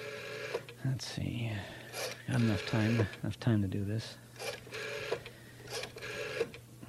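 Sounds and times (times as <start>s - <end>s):
rotary telephone dial turning: 0.0s - 0.8s, 1.9s - 3.2s, 4.4s - 6.6s
speech: 0.8s - 4.5s.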